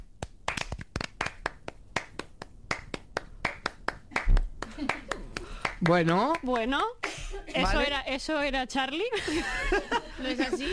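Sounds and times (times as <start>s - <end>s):
rhythmic hand clapping: 0.0s - 7.2s
speech: 5.8s - 10.7s.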